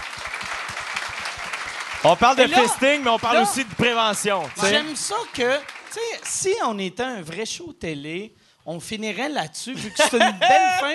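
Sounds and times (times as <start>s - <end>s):
audience applause: 0.0s - 6.6s
speech: 2.0s - 10.9s
laughter: 9.8s - 10.9s.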